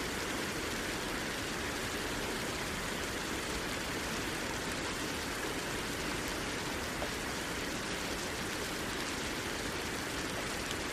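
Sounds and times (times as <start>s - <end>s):
steady rain: 0.0s - 10.9s.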